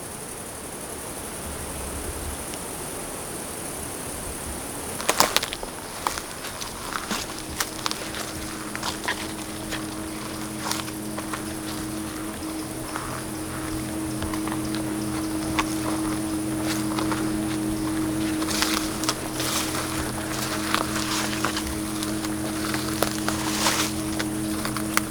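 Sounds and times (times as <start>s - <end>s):
insects chirping in a forest clearing: 0.0s - 25.0s
birds whistling: 5.9s - 25.0s.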